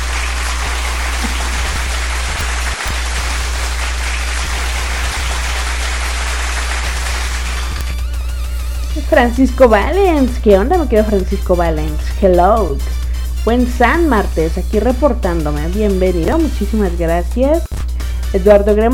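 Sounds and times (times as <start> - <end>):
audience applause: 0.0 - 8.0
speech: 9.1 - 17.7, 18.3 - 18.9.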